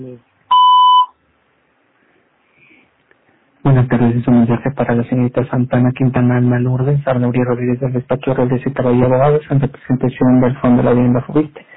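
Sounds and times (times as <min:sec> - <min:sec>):
speech: 0:00.0 - 0:00.3, 0:03.6 - 0:11.7
voicemail beep after a Spanish-language answering message: 0:00.5 - 0:01.2.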